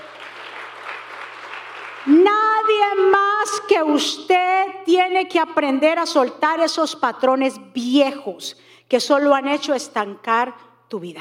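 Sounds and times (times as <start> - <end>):
audience applauding loudly: 0.0 - 2.2
speech: 2.0 - 11.1.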